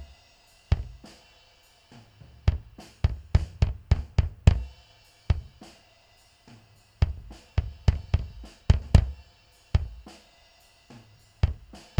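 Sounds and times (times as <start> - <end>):
bass drum: 2.3 - 4.7, 5.3 - 5.6, 7.0 - 9.2, 9.8 - 10.1, 11.4 - 11.9.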